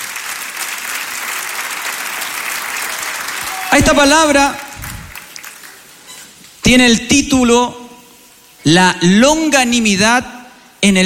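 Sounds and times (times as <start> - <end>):
audience applauding: 0.0 - 6.0
speech: 3.8 - 4.6, 6.7 - 7.8, 8.6 - 11.0.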